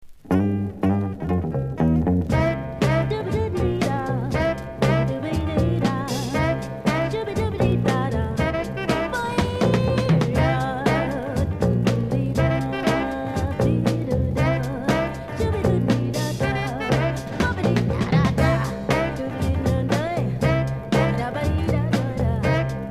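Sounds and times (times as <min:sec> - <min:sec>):
disco jazz music: 0:00.0 - 0:22.9.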